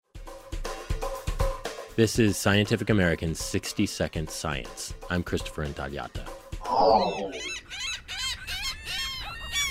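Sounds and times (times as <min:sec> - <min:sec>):
speech: 0:02.0 - 0:07.6
hungry gulls at the beach: 0:06.6 - 0:09.6.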